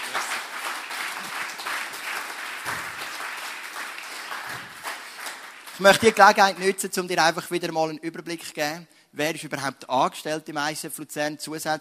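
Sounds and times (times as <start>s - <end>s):
audience applause: 0.0s - 6.7s
speech: 5.8s - 11.7s.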